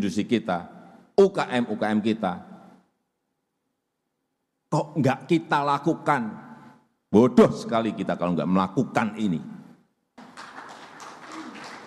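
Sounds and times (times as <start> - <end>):
speech: 0.0 - 2.5, 4.7 - 6.4, 7.1 - 9.6
audience applause: 10.2 - 11.8.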